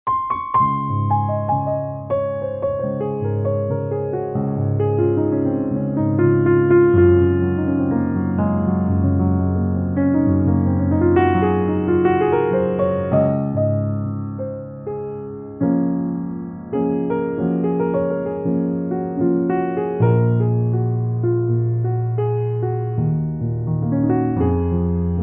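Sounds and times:
jazz pub piano: 0.0 - 25.2.

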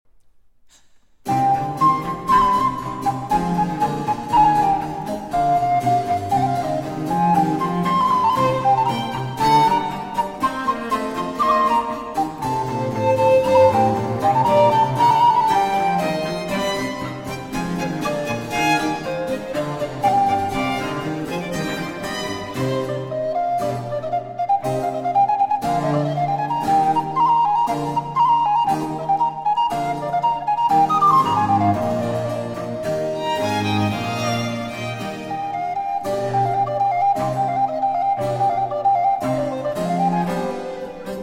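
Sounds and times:
baroque fugue for recorder, two violins and continuo in C minor: 1.3 - 41.2.

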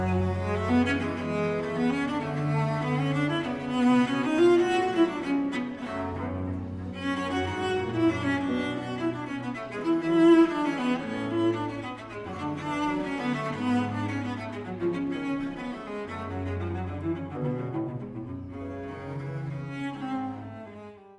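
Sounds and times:
cello concerto: 0.0 - 21.1.

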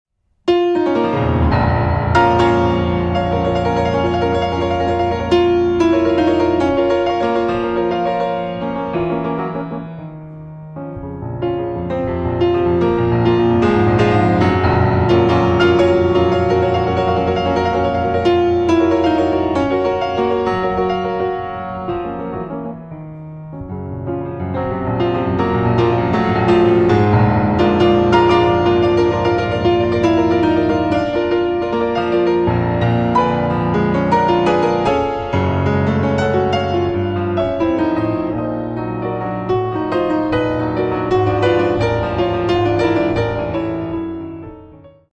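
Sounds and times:
piano sonata: 0.1 - 45.1.

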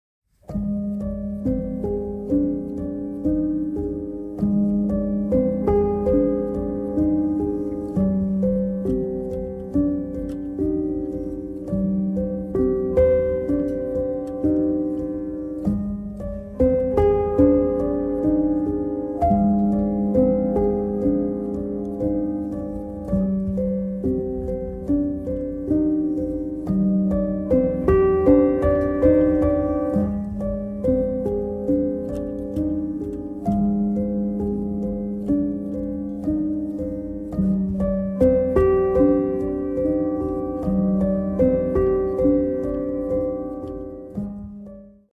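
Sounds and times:
piano: 0.2 - 45.1.

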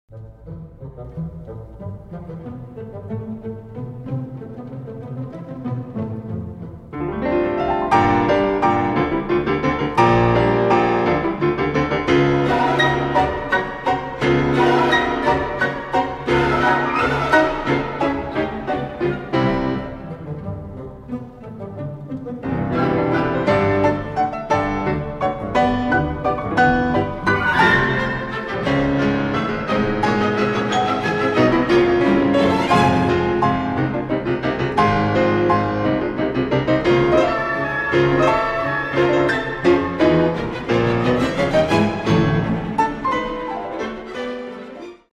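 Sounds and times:
piano concerto allegro ma non troppo: 0.1 - 45.1.

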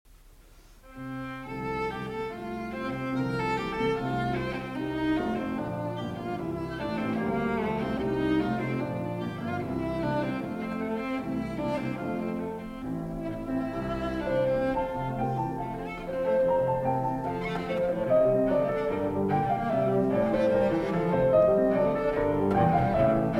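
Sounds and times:
live cello sonata: 0.2 - 23.3.

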